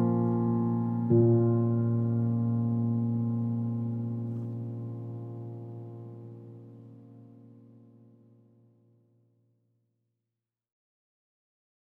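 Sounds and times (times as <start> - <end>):
solo piano: 0.0 - 8.9.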